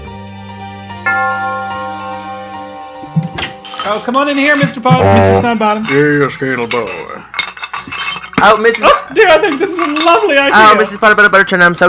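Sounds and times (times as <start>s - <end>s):
speech: 1.1s - 1.6s, 3.9s - 7.3s, 8.4s - 11.8s
Christmas dinner bell ringing: 1.1s - 7.1s.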